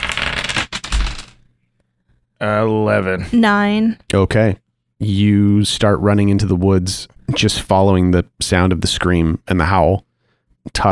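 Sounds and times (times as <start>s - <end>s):
two six-sided dice rattling across a hard surface: 0.0s - 1.4s
speech: 2.4s - 10.9s.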